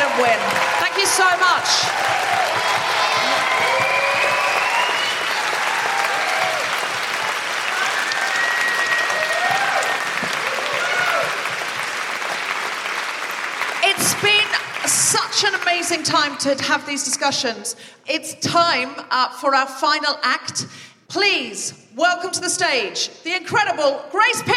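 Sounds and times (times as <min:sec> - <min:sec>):
cheering: 0:00.0 - 0:14.9
live-event audience applause: 0:00.0 - 0:15.8
speech: 0:01.1 - 0:03.8, 0:15.7 - 0:24.5.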